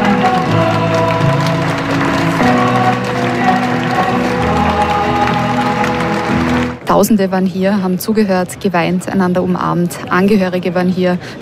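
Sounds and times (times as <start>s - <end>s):
audience applause at memorial ceremony: 0.0s - 6.8s
speech: 7.0s - 11.4s.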